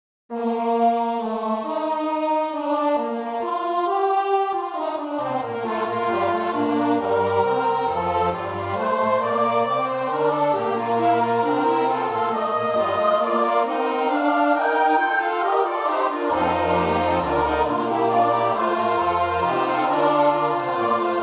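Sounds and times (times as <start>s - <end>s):
four-part choir singing: 0.5s - 4.0s, 4.7s - 21.2s.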